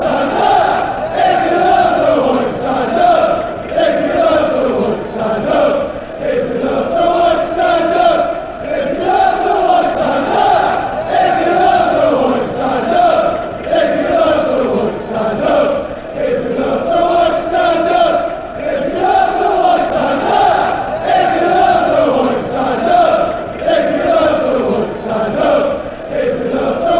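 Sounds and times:
chanting: 0.0 - 26.9.

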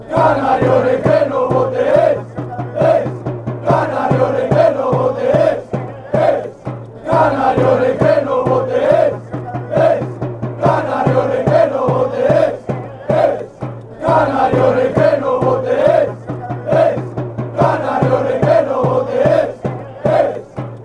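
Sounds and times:
football fans chanting: 0.0 - 20.8.

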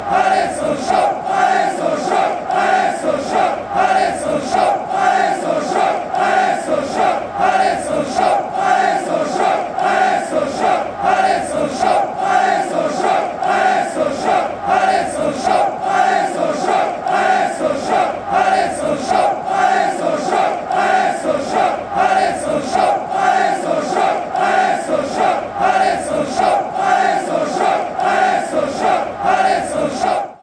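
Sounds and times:
football crowd chanting a victory song at Stade Bonal: 0.0 - 30.4.

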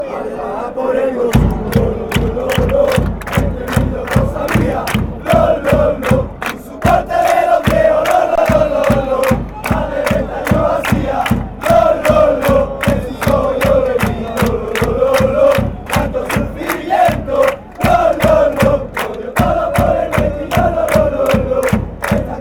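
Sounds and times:
fans chanting: 0.0 - 22.3.

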